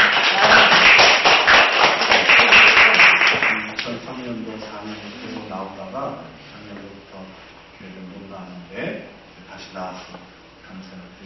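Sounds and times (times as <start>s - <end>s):
church congregation applause welcoming back a returning member: 0.0s - 3.8s.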